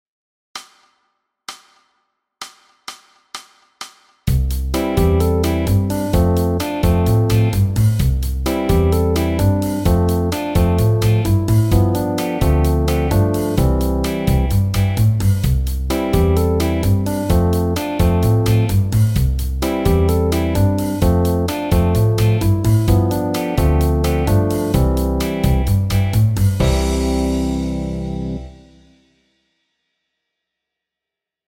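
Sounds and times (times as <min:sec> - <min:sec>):
bass in the B section: 0:04.3 - 0:28.9.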